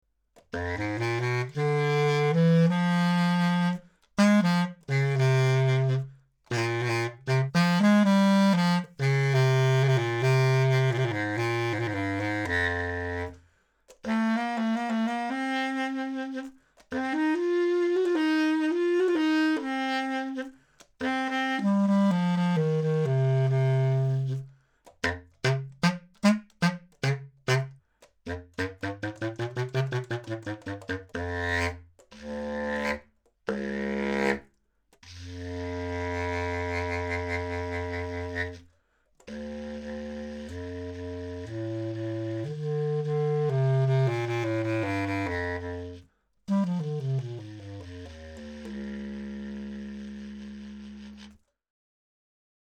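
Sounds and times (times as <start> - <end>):
bass clarinet: 0.4 - 51.5.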